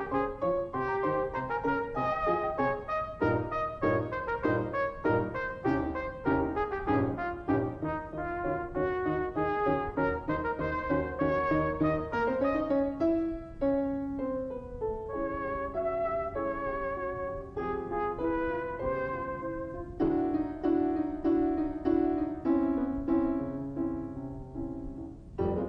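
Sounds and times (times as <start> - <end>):
trumpet sonata: 0.0 - 24.2.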